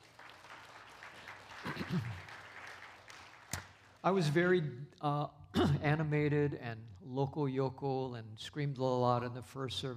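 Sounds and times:
audience applauding: 0.0 - 4.5
speech: 1.9 - 2.2, 4.0 - 9.9.

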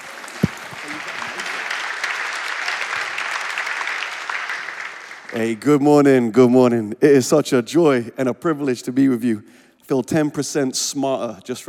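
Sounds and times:
audience applause at a Christian gathering welcoming a speaker: 0.0 - 5.6
speech: 5.3 - 11.6.

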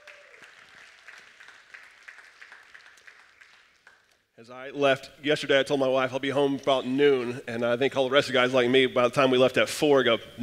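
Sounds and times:
audience applauding: 0.0 - 4.3
speech: 4.4 - 10.4.

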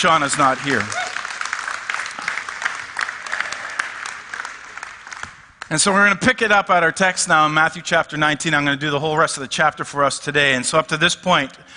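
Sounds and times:
speech: 0.0 - 1.0, 5.7 - 11.7
audience applause: 0.0 - 5.7.

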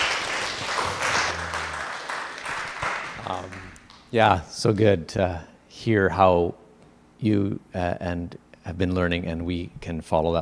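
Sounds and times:
audience applause: 0.0 - 3.8
laughter: 0.8 - 1.9
speech: 3.3 - 6.6, 7.2 - 10.3.

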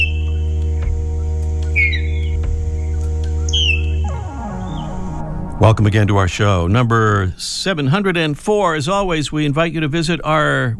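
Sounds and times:
Lapland Longspur song: 0.0 - 0.5, 1.6 - 5.0
loud steady low droning hum: 0.0 - 9.3
speech: 5.7 - 10.7.

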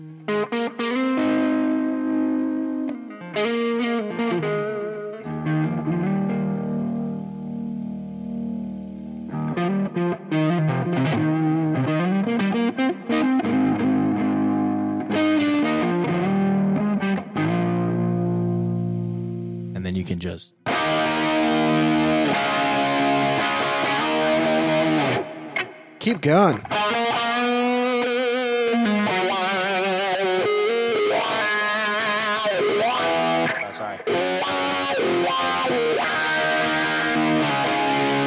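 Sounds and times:
crunchy distorted electric guitar with plate reverb: 0.0 - 19.7, 20.7 - 38.2
speech: 20.3 - 20.6, 26.1 - 26.9.

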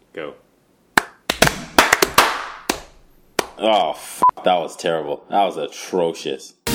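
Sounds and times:
speech: 0.2 - 0.5, 3.6 - 6.6
hand claps for recording sync: 1.0 - 3.6.

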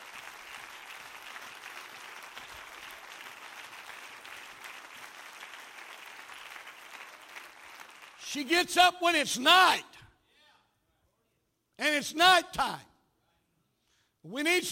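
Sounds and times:
audience clapping hands: 0.0 - 8.5
speech: 8.3 - 9.9, 11.8 - 12.9, 14.2 - 14.6.

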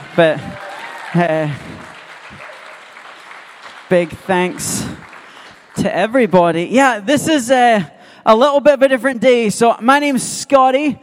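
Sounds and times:
church congregation applauding the worship band: 0.0 - 7.2
speech: 0.2 - 1.8, 3.9 - 5.1, 5.8 - 11.0.

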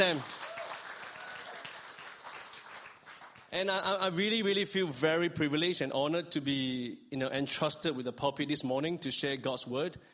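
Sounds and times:
speech: 0.0 - 0.4, 3.5 - 10.1
church congregation applauding their pastor during a morning service: 0.0 - 3.6.

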